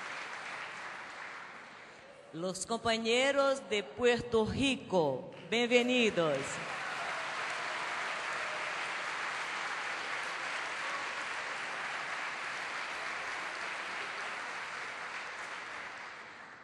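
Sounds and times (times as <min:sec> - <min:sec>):
audience applause: 0:00.0 - 0:02.0, 0:06.2 - 0:16.6
speech: 0:02.3 - 0:06.7.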